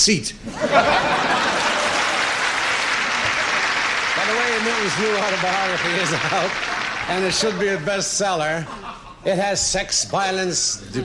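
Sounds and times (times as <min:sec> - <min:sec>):
speech: 0:00.0 - 0:01.1, 0:04.3 - 0:11.0
laughter: 0:00.4 - 0:09.4
crowd clapping: 0:01.2 - 0:07.9.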